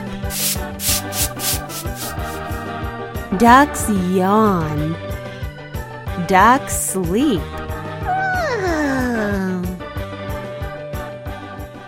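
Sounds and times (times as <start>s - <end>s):
speech: 0.3s - 1.9s, 3.4s - 5.1s, 6.2s - 7.6s
scrubbing and sweeping strokes: 0.3s - 2.5s
low tuneful musical bed: 2.2s - 11.8s.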